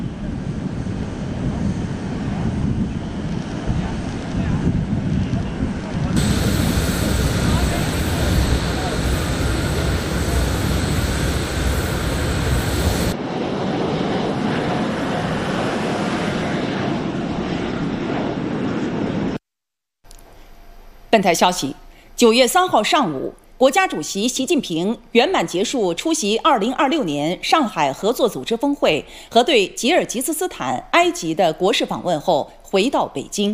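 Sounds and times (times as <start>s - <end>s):
airplane engine roar as an aircraft departs from an airport: 0.0s - 19.4s
speech: 21.2s - 33.5s.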